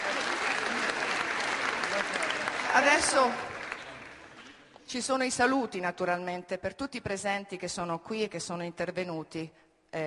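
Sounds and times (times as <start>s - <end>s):
audience applause: 0.0s - 4.7s
speech: 2.8s - 3.5s, 4.9s - 10.0s.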